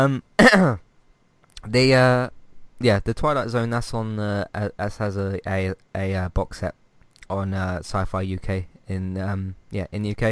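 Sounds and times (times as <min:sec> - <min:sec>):
speech: 0:00.0 - 0:00.8, 0:01.6 - 0:10.2
person coughing after a drink went down the wrong way: 0:00.4 - 0:00.8.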